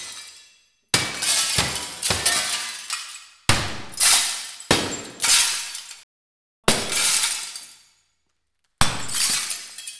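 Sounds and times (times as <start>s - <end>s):
glass breaking: 0.0s - 6.0s, 8.8s - 9.9s.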